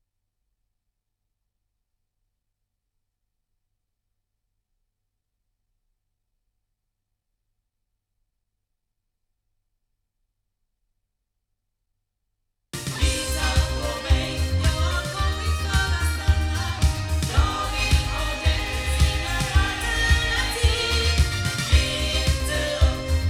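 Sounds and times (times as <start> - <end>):
loudspeaker playback recorded with Oktava MC219: 12.8 - 23.2.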